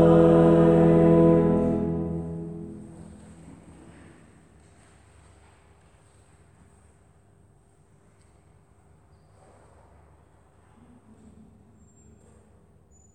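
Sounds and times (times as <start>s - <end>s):
choir singing: 0.0s - 3.1s.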